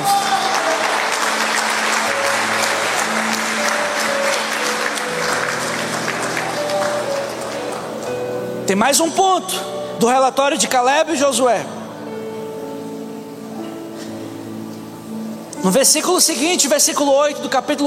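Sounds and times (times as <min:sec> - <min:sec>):
audience applause: 0:00.0 - 0:08.4
speech: 0:08.7 - 0:11.8, 0:15.6 - 0:17.8.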